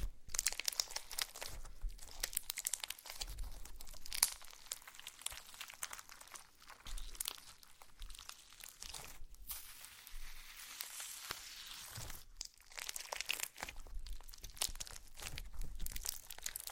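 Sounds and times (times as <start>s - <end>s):
slime squeezed and worked by hand: 0.0s - 16.7s.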